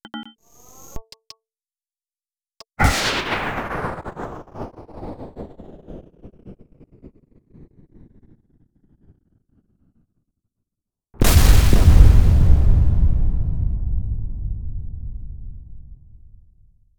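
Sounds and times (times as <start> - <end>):
rocket: 11.2 - 16.6.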